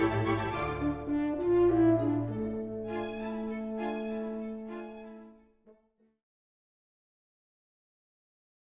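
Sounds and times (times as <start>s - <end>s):
horn with orchestra in a concerto: 0.0s - 5.4s.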